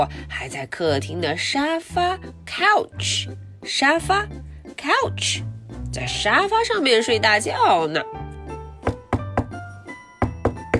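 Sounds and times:
speech: 0.0 - 8.2
knocking on a door: 8.8 - 9.6, 10.2 - 10.7.

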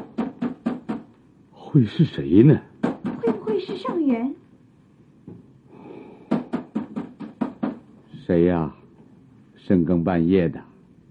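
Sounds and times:
knocking on door: 0.0 - 1.1, 2.8 - 4.2, 6.3 - 7.9
speech: 1.7 - 2.7, 3.3 - 4.4, 8.3 - 8.8, 9.7 - 10.7.

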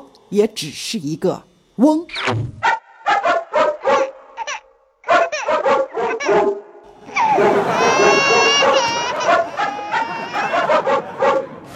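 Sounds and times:
speech: 0.3 - 2.7
dog yapping: 2.6 - 11.4
shrill crying and laughing sounds: 4.0 - 11.6.

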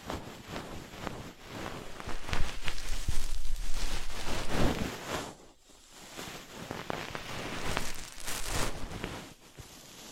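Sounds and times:
ear picking scratching rubs: 1.4 - 5.2, 6.1 - 9.2.

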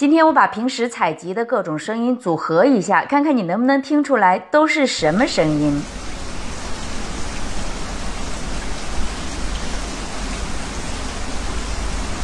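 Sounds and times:
speech: 0.0 - 6.1
rain falling: 5.0 - 12.2.

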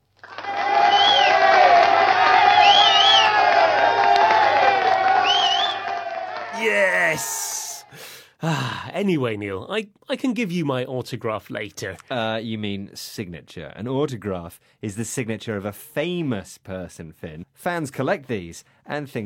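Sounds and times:
cheering and whistles: 0.2 - 7.9
crowd applause sound effect: 0.2 - 7.9
speech: 7.1 - 7.6, 8.4 - 19.2.

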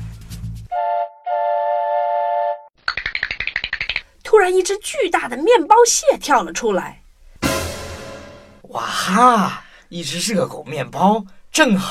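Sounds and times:
toy train whistle: 0.7 - 2.7
speech: 4.5 - 7.0, 8.7 - 11.8.

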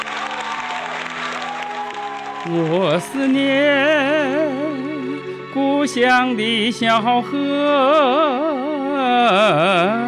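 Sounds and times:
audience applause: 0.0 - 3.4
speech: 2.4 - 10.0.

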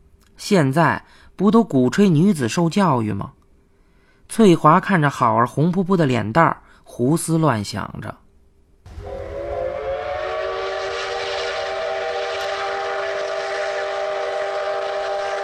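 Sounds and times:
speech: 0.4 - 3.4, 4.3 - 8.2
hissing rail noise: 8.9 - 15.4
train brakes squealing while slowing down: 8.9 - 15.4.

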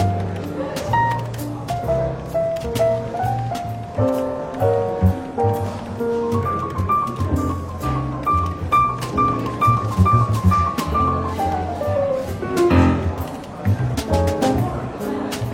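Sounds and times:
light murmur of voices: 0.0 - 15.5
soft relaxed jazz in a bookshop café: 0.0 - 15.5.

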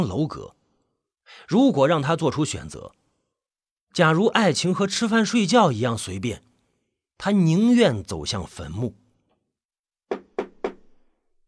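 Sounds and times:
speech: 0.0 - 0.6, 1.3 - 3.0, 3.9 - 6.5, 7.2 - 9.0
knocking on a door: 10.1 - 11.0.

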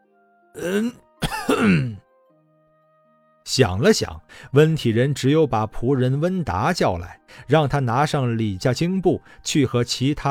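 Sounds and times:
speech: 0.6 - 1.0, 1.6 - 2.0, 3.4 - 10.2
awkward single cough: 0.6 - 2.0.

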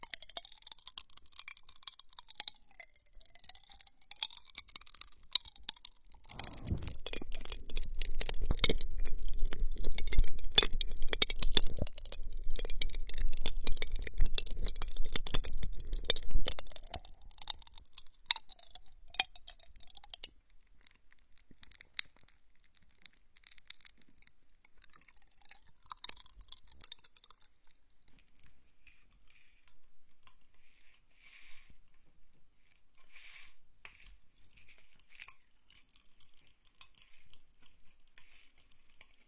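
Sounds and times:
popping candy crackling in a wet mouth: 0.0 - 28.1
low rumble: 6.3 - 8.3.

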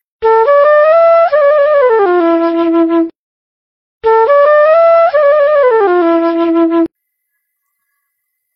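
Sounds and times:
copper flute playing: 0.2 - 3.1, 4.0 - 6.9.

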